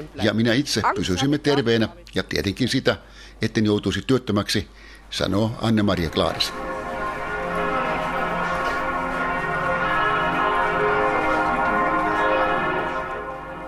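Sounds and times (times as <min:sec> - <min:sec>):
speech: 0:00.0 - 0:06.7
Kaiser Wilhelm Memorial Church bells ringing in Berlin: 0:05.6 - 0:13.6.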